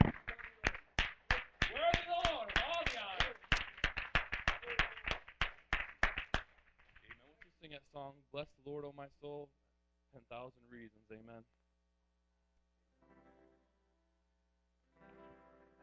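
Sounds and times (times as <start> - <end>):
people cheering at a worship gathering: 0.0 - 5.2
people clapping at a worship gathering: 0.0 - 7.7
speech: 8.1 - 11.6.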